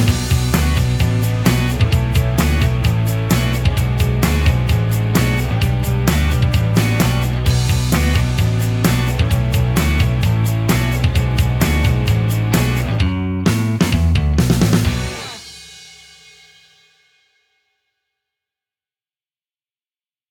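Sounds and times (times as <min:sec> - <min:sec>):
heavy rock music: 0:00.0 - 0:15.9.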